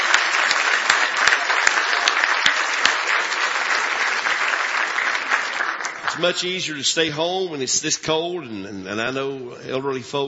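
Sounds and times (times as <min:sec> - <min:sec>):
audience hand clapping: 0:00.0 - 0:06.8
speech: 0:06.2 - 0:10.2.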